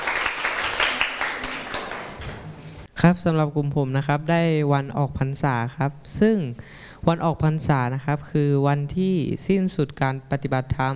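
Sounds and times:
students in a Thai classroom clapping for classmates: 0:00.0 - 0:02.5
speech: 0:03.0 - 0:10.9.

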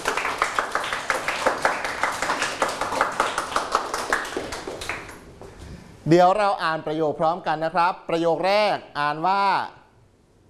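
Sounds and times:
people clapping: 0:00.0 - 0:05.5
speech: 0:06.1 - 0:09.8.

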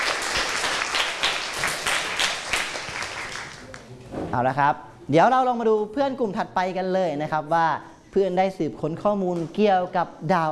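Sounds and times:
applause for classmates: 0:00.0 - 0:03.9
speech: 0:04.4 - 0:10.4.

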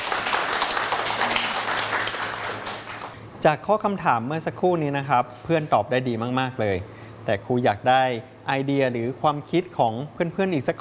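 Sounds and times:
classroom applause: 0:00.0 - 0:03.2
speech: 0:03.4 - 0:10.7.

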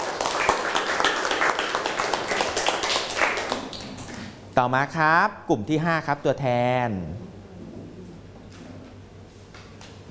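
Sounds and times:
room full of people clapping: 0:00.0 - 0:04.3
speech: 0:04.6 - 0:07.4.

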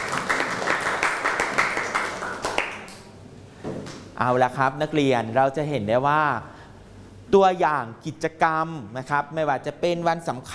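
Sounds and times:
class applauding: 0:00.0 - 0:03.1
speech: 0:04.2 - 0:06.6, 0:07.3 - 0:10.5.

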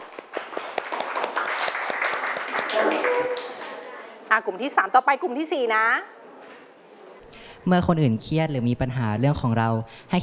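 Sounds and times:
group applause for classmates: 0:00.0 - 0:04.0
speech: 0:02.8 - 0:03.4, 0:04.3 - 0:06.2, 0:07.6 - 0:10.2.

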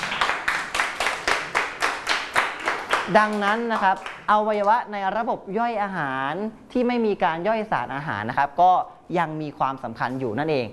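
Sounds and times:
classroom clapping for a classmate: 0:00.0 - 0:04.7
speech: 0:03.1 - 0:10.7.

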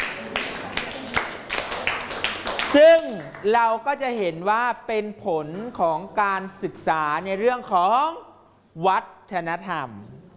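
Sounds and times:
students clapping for classmates after a Ramayana performance: 0:00.0 - 0:03.7
speech: 0:02.7 - 0:10.2.

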